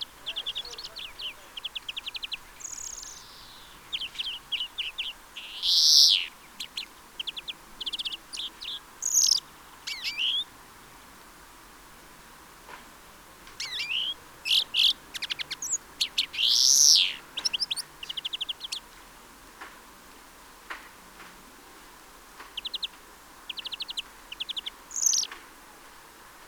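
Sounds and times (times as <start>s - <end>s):
European greenfinch trilled calls: 0.0s - 10.5s, 13.6s - 18.9s, 22.6s - 25.3s.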